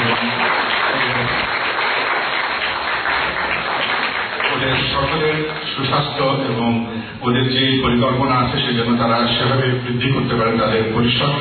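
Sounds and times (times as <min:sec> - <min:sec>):
audience applause after a recitation performance: 0:00.0 - 0:06.2
speech: 0:05.9 - 0:11.3.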